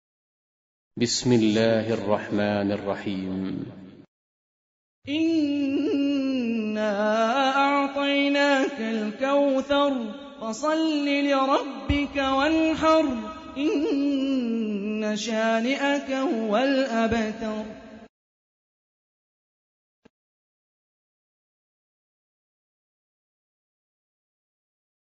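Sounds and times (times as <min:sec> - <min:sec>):
Quran recitation: 0:01.0 - 0:03.8, 0:05.1 - 0:18.1.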